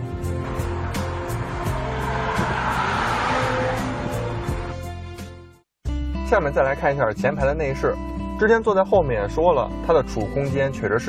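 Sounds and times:
six-cylinder car engine at high revs: 0:00.2 - 0:04.9
speech: 0:06.3 - 0:11.0.

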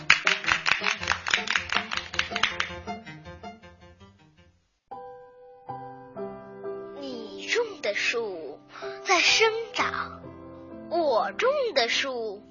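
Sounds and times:
audience applause: 0:00.0 - 0:02.9
speech: 0:07.9 - 0:08.4, 0:09.1 - 0:10.2, 0:10.9 - 0:12.5.

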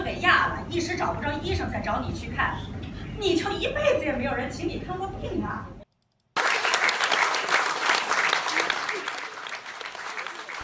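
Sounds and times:
speech: 0:00.8 - 0:05.8
warm audience applause: 0:06.4 - 0:10.6.

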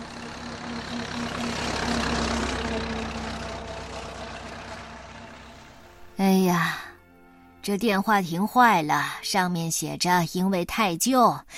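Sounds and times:
car driving up from afar: 0:00.0 - 0:06.2
speech: 0:07.6 - 0:11.5.

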